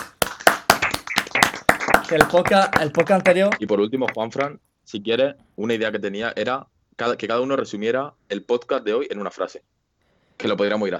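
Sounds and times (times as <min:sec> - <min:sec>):
group clapping applause: 0:00.0 - 0:04.6
speech: 0:02.1 - 0:09.7, 0:10.4 - 0:10.9.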